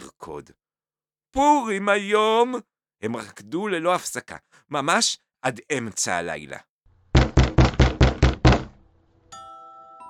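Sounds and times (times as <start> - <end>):
speech: 0.3 - 0.6, 1.3 - 6.7
knocking on a door: 7.2 - 8.8.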